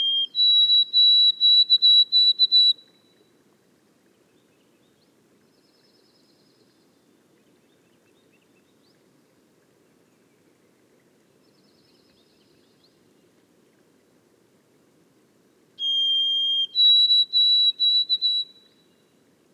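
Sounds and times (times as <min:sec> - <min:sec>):
White-throated sparrow whistled song in boreal forest: 0:00.0 - 0:02.9, 0:15.8 - 0:18.8.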